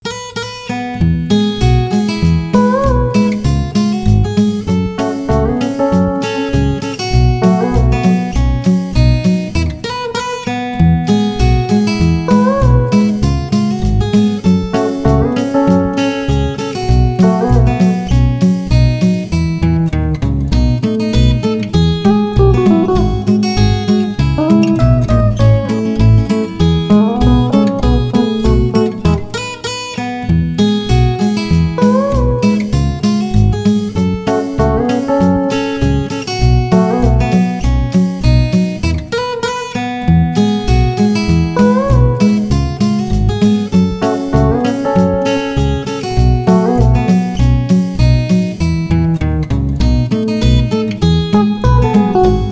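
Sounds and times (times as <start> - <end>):
instrumental music: 0.0 - 52.5.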